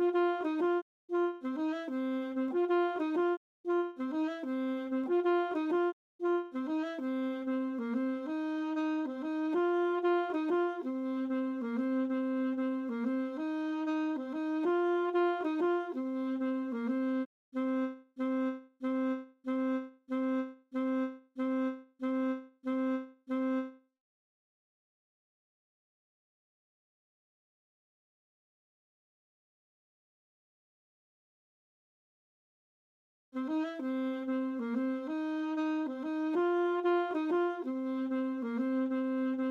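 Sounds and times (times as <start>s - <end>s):
alto saxophone: 0.0s - 23.8s, 33.4s - 39.5s.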